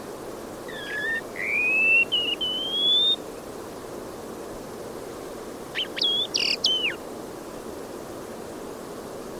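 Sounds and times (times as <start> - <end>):
bird calling with thin whistled notes: 0.7 - 3.2, 5.7 - 7.0.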